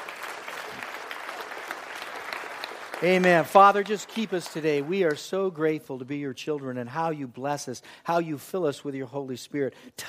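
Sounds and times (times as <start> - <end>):
congregation applauding during a church worship service: 0.0 - 6.7
speech: 3.0 - 10.0.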